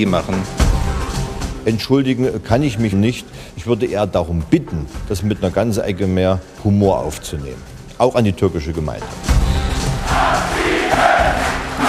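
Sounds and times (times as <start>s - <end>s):
speech: 0.0s - 0.6s, 1.6s - 9.3s
hall crowd at a political gathering cheering and chanting: 9.9s - 11.8s.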